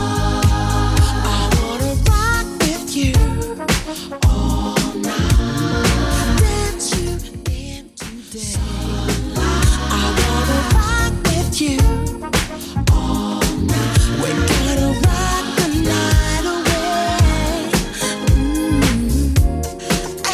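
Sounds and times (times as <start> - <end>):
90s drum beat at 111 bpm: 0.0 - 20.2.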